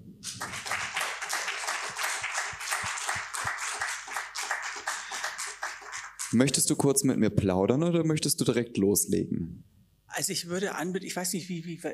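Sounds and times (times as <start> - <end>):
audience applause: 0.3 - 6.4
speech: 6.3 - 11.9.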